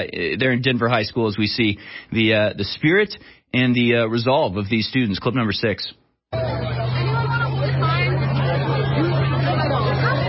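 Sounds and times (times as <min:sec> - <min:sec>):
speech: 0:00.0 - 0:06.0
large crowd of students chattering: 0:06.3 - 0:10.2.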